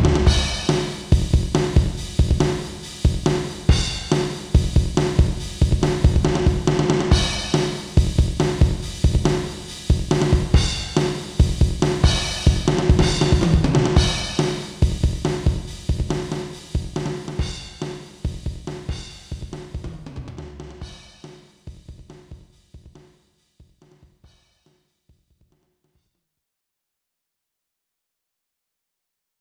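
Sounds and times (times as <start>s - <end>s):
eight-beat drum pattern: 0.0s - 23.0s.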